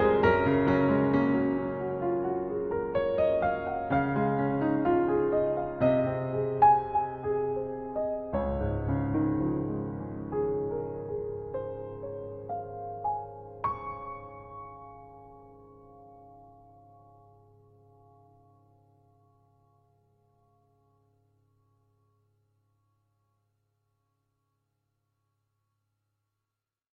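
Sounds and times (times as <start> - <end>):
short beautiful improvised piano piece: 0.0 - 19.9.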